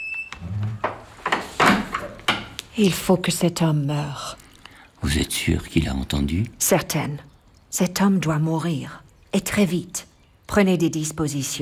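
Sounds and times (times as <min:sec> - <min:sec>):
door being closed: 0:00.2 - 0:02.6
speech: 0:02.8 - 0:04.4, 0:05.0 - 0:11.6.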